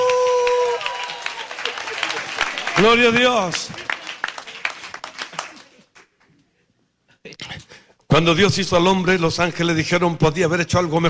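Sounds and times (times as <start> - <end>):
audience applause: 0.0 - 6.3
speech: 2.8 - 3.8, 8.2 - 11.0.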